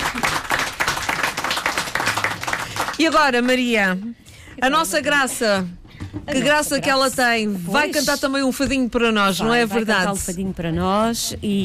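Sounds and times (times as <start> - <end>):
audience clapping at a fado performance for a Portuguese guitar player: 0.0 - 3.8
speech: 3.0 - 11.6.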